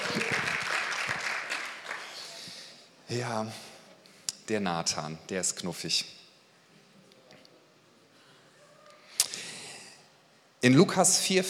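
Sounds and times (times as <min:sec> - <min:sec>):
audience applause: 0:00.0 - 0:02.4
speech: 0:03.1 - 0:03.7, 0:04.5 - 0:06.2, 0:10.6 - 0:11.4.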